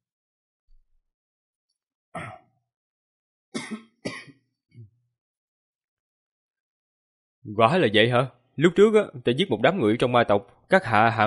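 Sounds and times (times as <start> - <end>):
dry coughing: 2.2 - 2.5, 3.6 - 4.5
speech: 7.5 - 11.2.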